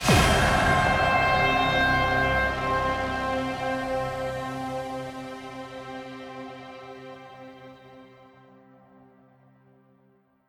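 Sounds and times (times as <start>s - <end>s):
jingle music: 0.0s - 8.0s.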